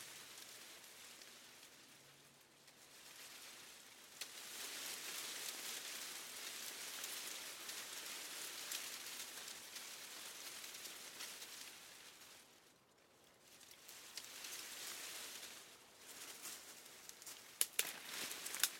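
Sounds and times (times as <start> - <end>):
leaves moving: 0.0 - 18.7
footsteps snapping twigs: 13.6 - 14.6, 16.3 - 18.7.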